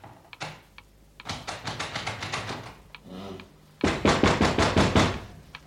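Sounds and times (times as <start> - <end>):
door being shut, locking someone in: 3.8 - 5.3.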